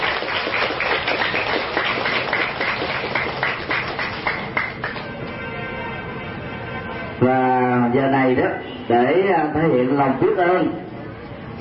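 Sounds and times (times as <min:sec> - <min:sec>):
crowd applauding: 0:00.0 - 0:05.1
speech: 0:08.0 - 0:10.8.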